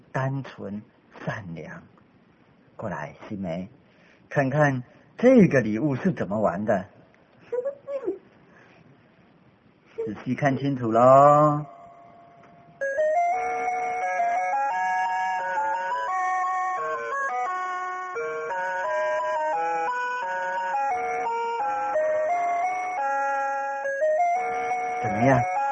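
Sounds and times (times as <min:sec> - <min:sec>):
speech: 0:00.2 - 0:02.0, 0:02.8 - 0:07.0, 0:10.1 - 0:11.8
clock music box playing melody: 0:11.5 - 0:25.6.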